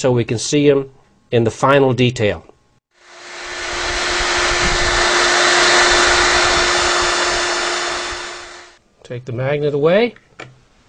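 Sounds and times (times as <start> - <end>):
speech: 0.0 - 2.5, 9.1 - 10.6
hair dryer running: 3.0 - 8.8.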